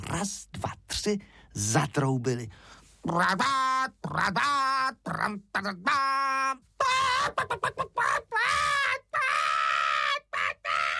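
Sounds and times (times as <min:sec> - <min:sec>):
speech: 0:00.1 - 0:06.7
human voice imitating a frightened hen squawking: 0:03.1 - 0:10.9.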